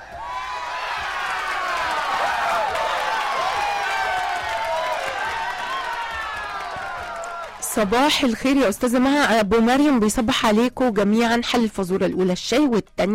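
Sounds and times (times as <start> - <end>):
cheering and high whistle-like whoops: 0.0 - 8.1
audience applause: 0.0 - 8.5
speech: 7.8 - 13.1.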